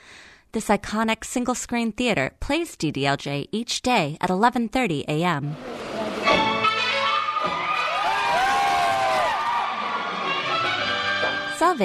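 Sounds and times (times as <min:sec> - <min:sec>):
speech: 0:00.5 - 0:06.4
music with sustained harmonic tones: 0:05.5 - 0:11.8
cinema crowd cheering and shouting: 0:05.6 - 0:11.4.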